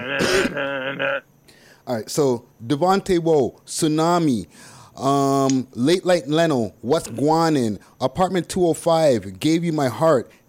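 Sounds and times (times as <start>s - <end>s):
throat clearing: 0.0s - 1.2s
speech: 0.1s - 1.3s, 1.9s - 10.4s.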